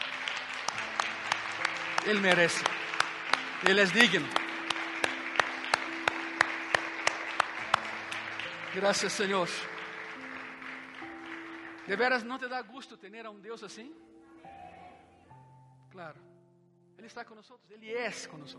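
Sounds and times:
audience clapping in unison: 0.0s - 12.7s
speech: 2.0s - 2.8s, 3.6s - 4.4s, 8.8s - 9.7s, 11.9s - 14.1s, 16.0s - 16.3s, 17.0s - 18.5s.

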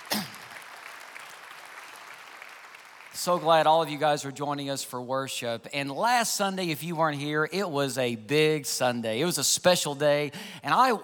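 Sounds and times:
on-site congregation clapping at a church worship service: 0.0s - 4.0s
speech: 3.2s - 11.0s.

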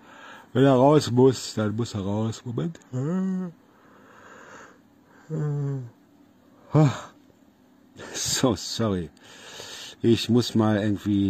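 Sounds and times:
speech: 0.5s - 3.6s, 5.3s - 6.0s, 6.7s - 7.1s, 8.0s - 11.2s
yawn: 4.6s - 6.0s, 6.6s - 7.2s.

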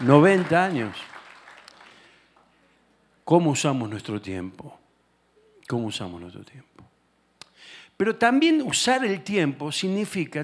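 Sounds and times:
speech: 0.0s - 1.1s, 3.3s - 4.8s, 5.7s - 6.8s, 8.0s - 10.4s
crowd applauding: 0.0s - 2.5s.

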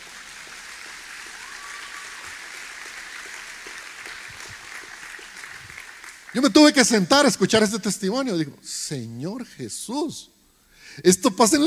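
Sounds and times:
audience applause: 0.0s - 7.0s
speech: 6.3s - 10.4s, 11.0s - 11.6s.

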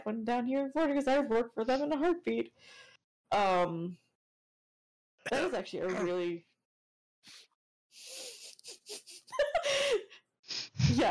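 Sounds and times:
speech: 0.0s - 4.0s, 5.2s - 6.5s, 7.2s - 8.3s, 10.9s - 11.0s
person coughing: 5.3s - 6.2s
laughter: 8.4s - 10.1s.

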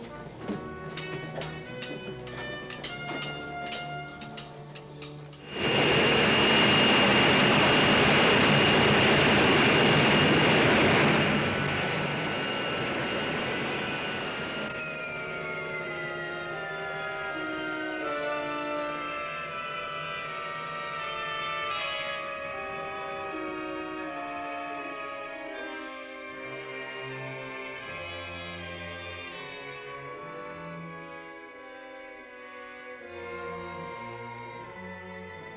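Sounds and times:
spaceship engine roar entering atmosphere and landing: 5.4s - 21.3s
falling whine: 5.4s - 22.5s.

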